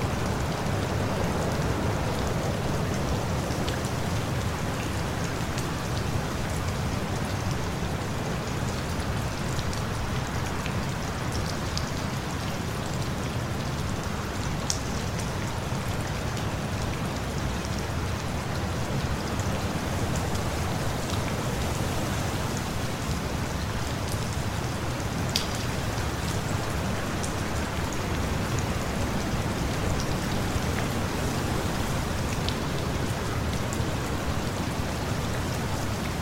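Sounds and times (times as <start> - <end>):
rain: 0.0 - 36.2.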